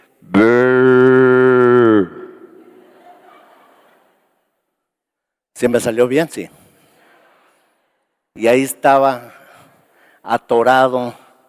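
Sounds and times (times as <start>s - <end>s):
voice imitating a ram's bleat: 0.2s - 2.6s
laughter: 2.2s - 4.5s
speech: 5.6s - 6.6s, 8.4s - 9.4s, 10.2s - 11.2s.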